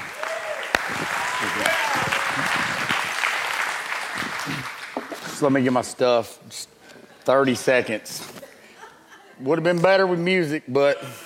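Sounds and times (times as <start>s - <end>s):
audience applause welcoming a pastor at a church service: 0.0s - 5.2s
speech: 5.4s - 8.3s, 9.4s - 11.2s.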